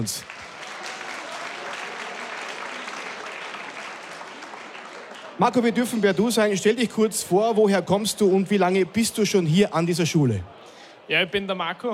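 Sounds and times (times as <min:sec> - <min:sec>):
speech: 0:00.0 - 0:00.4, 0:05.4 - 0:11.9
audience applause: 0:00.0 - 0:06.1.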